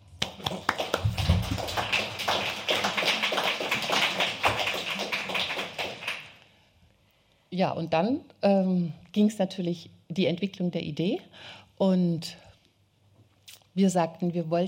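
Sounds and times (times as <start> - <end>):
audience applause: 0.0 - 6.4
speech: 7.6 - 12.4, 13.8 - 14.6.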